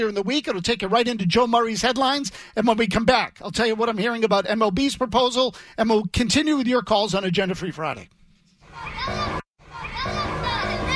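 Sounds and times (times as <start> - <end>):
speech: 0.0 - 8.2
children playing and shouting outside: 8.6 - 10.9.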